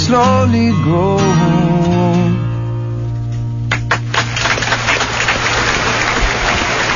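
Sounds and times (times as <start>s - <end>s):
speech: 0.1s - 2.5s
clapping: 3.7s - 6.9s.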